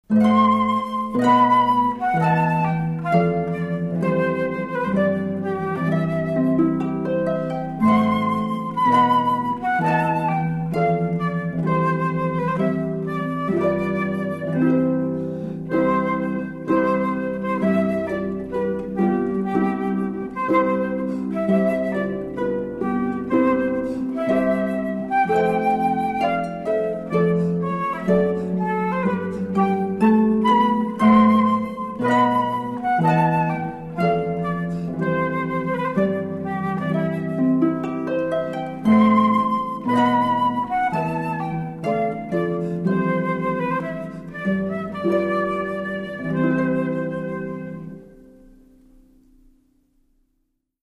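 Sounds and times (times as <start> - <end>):
harp duo: 0.0 - 49.6.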